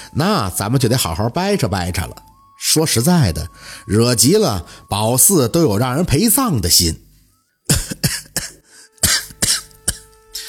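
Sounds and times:
speech: 0.1s - 7.0s
person coughing: 7.7s - 10.1s.

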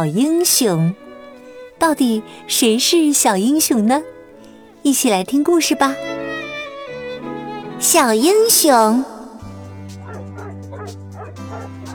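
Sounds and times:
speech: 0.0s - 1.1s, 1.8s - 4.1s, 4.8s - 6.3s, 7.8s - 9.2s
small dog barking in high yappy yips: 10.0s - 11.9s.

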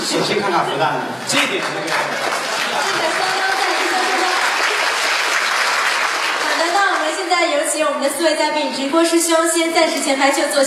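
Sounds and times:
speech: 0.1s - 4.3s, 7.0s - 10.6s
audience applause: 1.3s - 7.3s.

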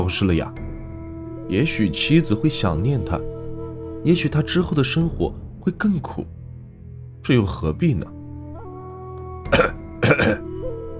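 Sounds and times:
speech: 0.0s - 0.6s, 1.5s - 3.3s, 4.0s - 6.4s, 7.2s - 8.1s
person coughing: 9.5s - 10.4s.

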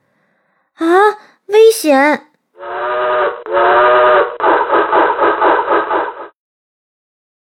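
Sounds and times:
speech: 0.8s - 2.8s
two trains sounding whistles while passing: 2.6s - 6.3s.

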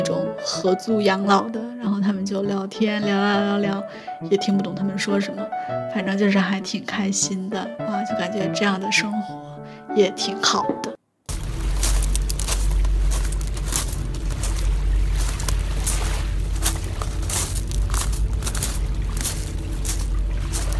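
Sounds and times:
speech: 0.0s - 11.0s
footsteps on a pebble beach: 11.3s - 20.7s
surf rumble: 11.3s - 20.7s
waves rattling over stones: 11.3s - 20.7s.

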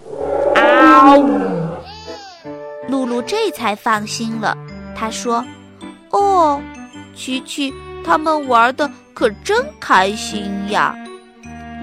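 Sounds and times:
soft trailing whine: 0.0s - 1.9s
voice imitating a lion cub's roar: 0.2s - 1.9s
speech: 3.2s - 11.0s.

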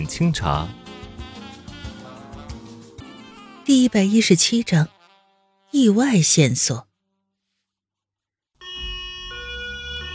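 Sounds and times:
speech: 0.0s - 0.8s, 3.7s - 4.9s, 5.7s - 6.9s
ambulance siren wailing: 8.6s - 10.1s.

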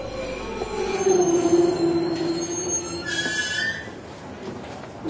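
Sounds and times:
electric train wheels squealing arriving at a station: 0.1s - 4.0s.

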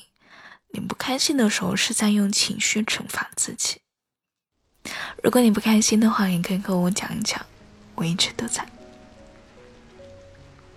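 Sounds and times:
speech: 1.1s - 3.8s, 5.2s - 8.7s
rain falling: 4.7s - 10.7s.

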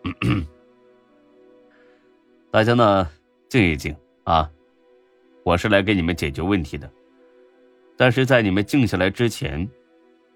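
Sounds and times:
man clearing his throat: 0.0s - 0.6s
speech: 0.2s - 0.5s, 2.5s - 4.6s, 5.4s - 7.0s, 8.0s - 9.8s.

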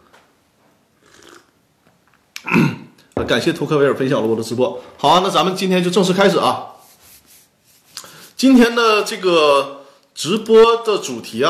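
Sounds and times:
person sipping a drink of water: 1.0s - 1.6s
speech: 2.5s - 6.7s, 8.4s - 11.4s.

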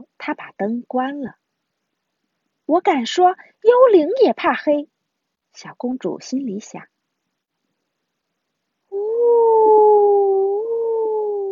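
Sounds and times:
speech: 0.2s - 1.4s, 2.7s - 4.9s, 5.6s - 6.9s
little girl howling like a ghost: 8.9s - 11.4s.

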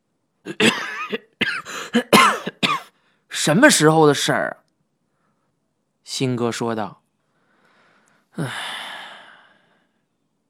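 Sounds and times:
speech: 0.4s - 1.2s, 3.5s - 4.6s, 6.1s - 7.0s, 8.4s - 8.8s
person coughing harshly: 0.5s - 3.0s.

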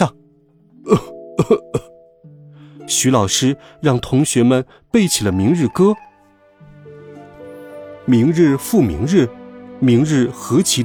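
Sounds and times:
speech: 0.0s - 0.2s, 0.8s - 1.8s, 2.9s - 6.1s, 8.1s - 10.8s
old man coughing in a rough hoarse fit: 0.9s - 2.0s.

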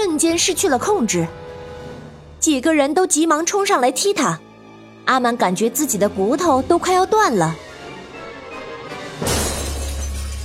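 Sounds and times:
speech: 0.1s - 1.5s, 2.4s - 4.4s, 5.1s - 7.6s
window glass shattering: 9.2s - 10.4s
tinkling fragments of window glass: 9.3s - 10.4s.

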